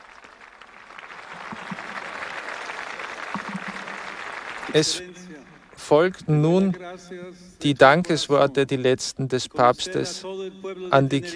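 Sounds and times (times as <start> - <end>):
crowd cheering: 0.0 - 5.6
speech: 4.7 - 5.2, 5.9 - 11.3.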